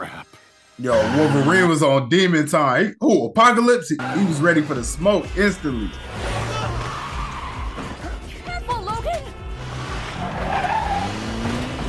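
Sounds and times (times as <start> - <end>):
tire squeals and skids: 0.8 - 1.9, 4.0 - 11.8
speech: 0.8 - 6.1
car engine roaring as it speeds toward a hospital: 4.0 - 11.8.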